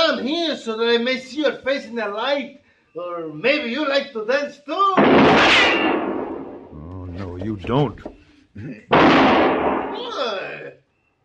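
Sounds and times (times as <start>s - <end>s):
speech: 0.5s - 6.2s, 7.2s - 10.8s
gunshot shooting a gun out of a man's hand in a Western standoff: 5.0s - 6.7s, 8.9s - 10.2s.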